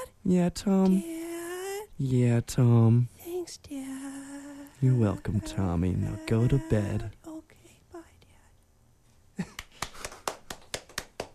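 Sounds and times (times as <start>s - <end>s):
speech: 0.2s - 1.2s, 2.0s - 3.9s, 4.8s - 7.2s
single person clapping hands: 9.4s - 11.3s.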